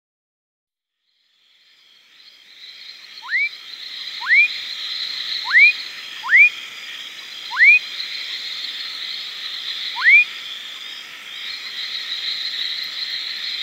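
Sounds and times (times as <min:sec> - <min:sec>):
fuscous foam frog rising whistles: 0:03.2 - 0:03.6, 0:04.2 - 0:04.6, 0:05.4 - 0:06.5, 0:07.5 - 0:07.8, 0:09.9 - 0:10.3.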